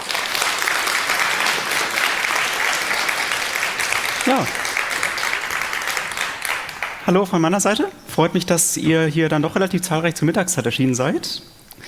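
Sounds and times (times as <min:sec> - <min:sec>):
audience applause: 0:00.0 - 0:07.8
speech: 0:04.3 - 0:04.6, 0:07.1 - 0:11.8.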